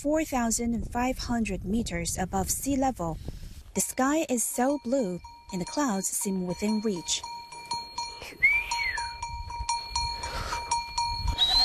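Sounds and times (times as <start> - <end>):
speech: 0.0 - 7.4
livestock hooves rumbling and shuffling: 0.2 - 11.6
livestock bells clanking: 3.8 - 11.6
boy whistling: 8.2 - 9.2, 11.2 - 11.6.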